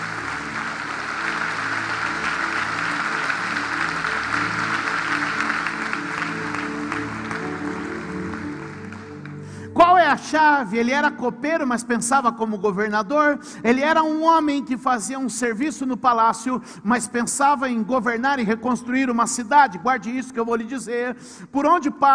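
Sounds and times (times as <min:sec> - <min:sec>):
audience applause: 0:00.0 - 0:09.5
low sustained musical drone: 0:00.0 - 0:10.2
speech: 0:10.3 - 0:22.1.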